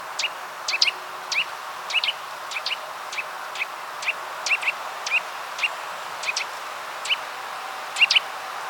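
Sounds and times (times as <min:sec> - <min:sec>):
Eurasian nuthatch (Sitta europaea) calling: 0:00.2 - 0:07.3, 0:08.0 - 0:08.3.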